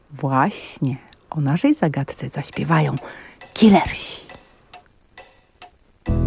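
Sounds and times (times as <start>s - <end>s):
speech: 0.2s - 4.2s
clock ticking: 1.1s - 6.1s.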